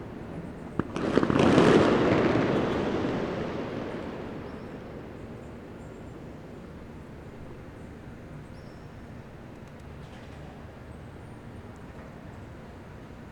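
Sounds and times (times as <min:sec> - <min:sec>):
fireworks at dawn on election day in Venezuela: 0:00.0 - 0:07.5.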